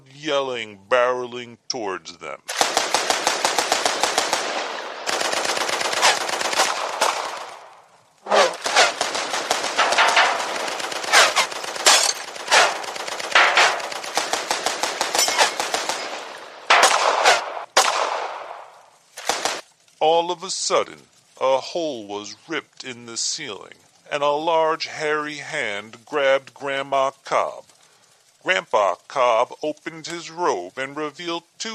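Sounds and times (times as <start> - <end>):
speech: 0.2 - 2.6, 20.3 - 27.6, 28.4 - 31.7
guns shooting into the woods: 2.5 - 19.6.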